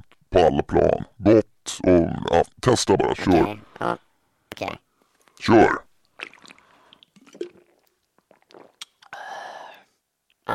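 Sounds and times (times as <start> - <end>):
speech: 0.3 - 4.8, 5.4 - 6.3
person drinking Norrlands Ljus non-alcoholic organic beer: 6.1 - 9.8.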